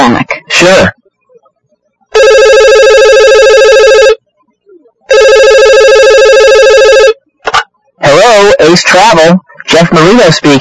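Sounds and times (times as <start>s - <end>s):
speech: 0.1s - 1.0s, 8.7s - 10.6s
telephone ringing: 2.1s - 4.2s, 5.1s - 7.2s.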